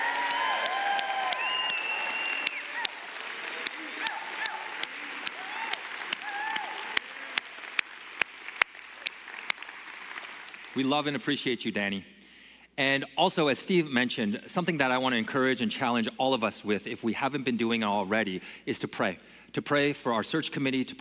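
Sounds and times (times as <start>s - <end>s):
whoops from a church congregation: 0.0s - 3.0s, 3.8s - 7.4s
church congregation applauding: 0.0s - 11.3s
speech: 10.8s - 12.1s, 12.8s - 20.9s.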